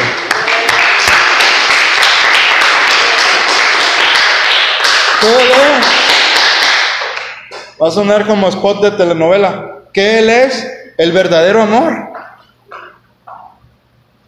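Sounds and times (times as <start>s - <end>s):
audience applause: 0.0s - 7.6s
speech: 7.8s - 12.3s.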